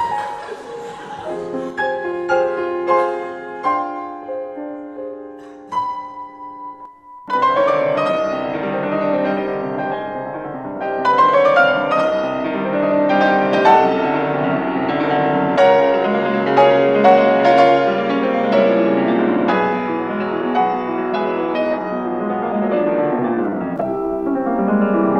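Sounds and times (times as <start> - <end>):
laughter: 0.0 - 3.8
etude with jazz interlude: 6.8 - 25.1.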